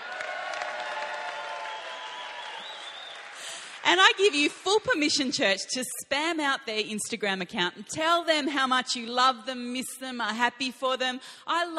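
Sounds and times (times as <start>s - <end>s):
church crowd cheering and whooping: 0.0s - 3.6s
church crowd clapping: 0.0s - 4.7s
speech: 3.9s - 11.7s.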